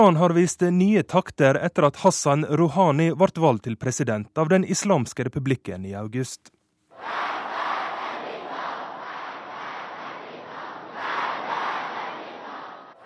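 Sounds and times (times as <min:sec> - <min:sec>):
speech: 0:00.0 - 0:07.2
crowd chanting slogans in a square in Teheran: 0:06.9 - 0:13.0.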